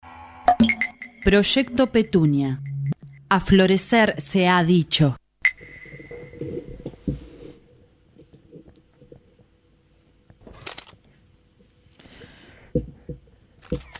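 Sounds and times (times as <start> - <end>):
speech: 0.6 - 2.7, 3.3 - 5.2
low hum: 0.7 - 13.9
camera shutters clicking at a public event: 10.5 - 11.0, 13.6 - 13.9.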